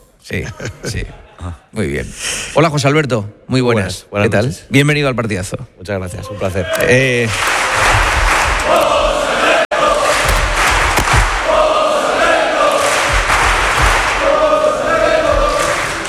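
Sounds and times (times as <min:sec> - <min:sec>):
speech: 0:00.2 - 0:07.8
crowd chanting a name: 0:06.7 - 0:16.0.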